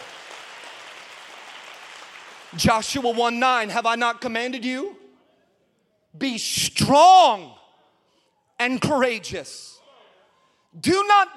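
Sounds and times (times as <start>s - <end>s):
audience clapping: 0.0s - 3.7s
speech: 2.5s - 5.0s, 6.2s - 7.6s, 8.6s - 9.8s, 10.8s - 11.3s.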